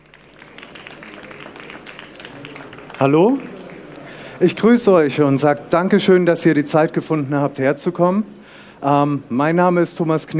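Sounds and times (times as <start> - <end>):
audience applause for a speaker at a talk on internet copyright reform: 0.0 - 4.9
speech: 3.0 - 3.5, 4.4 - 10.3.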